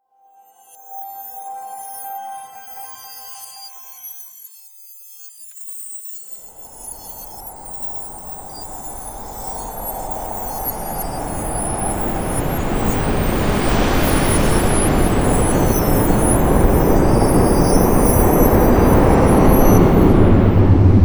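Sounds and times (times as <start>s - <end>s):
rain: 6.8s - 20.9s.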